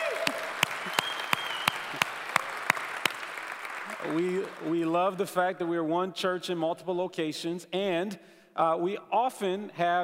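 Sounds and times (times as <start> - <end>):
audience applause: 0.0 - 4.9
speech: 4.1 - 10.0.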